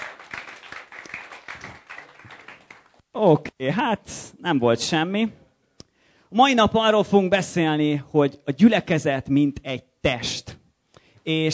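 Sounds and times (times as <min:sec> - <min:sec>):
audience applause: 0:00.0 - 0:03.0
speech: 0:03.2 - 0:05.4, 0:06.3 - 0:10.5, 0:11.2 - 0:11.5.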